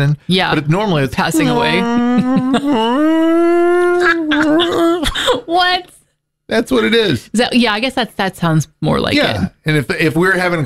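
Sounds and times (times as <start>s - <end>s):
speech: 0.0s - 10.6s
person imitating a whale call: 1.4s - 5.0s.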